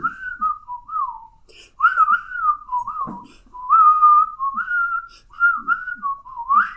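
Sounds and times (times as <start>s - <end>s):
person whistling a melody imitating a pan flute solo: 0.0s - 6.7s
breaths between whistled phrases: 1.4s - 1.8s, 5.0s - 5.4s.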